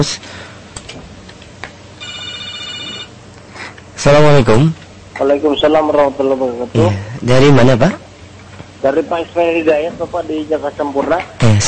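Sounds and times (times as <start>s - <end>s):
speech: 0.0s - 0.5s, 4.0s - 8.0s, 8.8s - 11.6s
telephone ringing for an incoming call: 2.0s - 3.2s.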